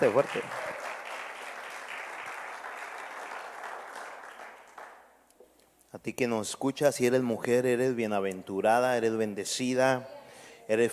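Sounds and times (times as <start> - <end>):
speech: 0.0 - 0.8, 6.0 - 10.9
crowd applauding: 0.0 - 5.1.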